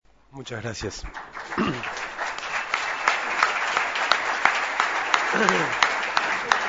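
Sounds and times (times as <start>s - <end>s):
speech: 0.3s - 2.2s, 5.3s - 5.9s
audience applause: 0.4s - 6.6s.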